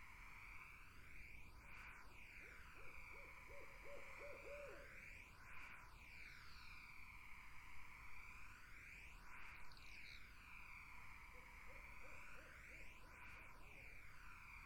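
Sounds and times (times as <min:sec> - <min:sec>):
steady high insect chorus: 0:00.0 - 0:14.6
barred owl hooting: 0:02.8 - 0:04.9, 0:11.3 - 0:12.5.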